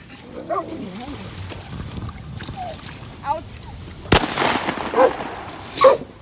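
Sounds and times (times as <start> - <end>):
rifle shots at a swimming nutria: 4.1 - 6.1.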